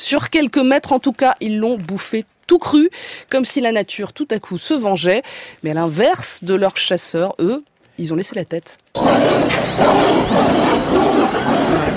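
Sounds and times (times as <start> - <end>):
speech: 0.0 - 11.6
lion roaring: 9.0 - 11.9.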